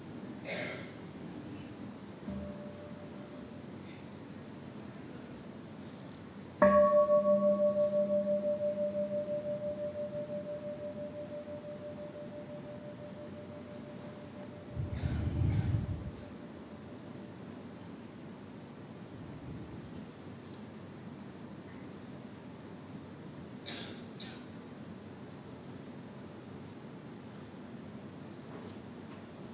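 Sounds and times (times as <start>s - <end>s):
meditation bell ringing: 2.3s - 3.6s, 6.6s - 14.9s
quiet breathing: 14.8s - 16.2s.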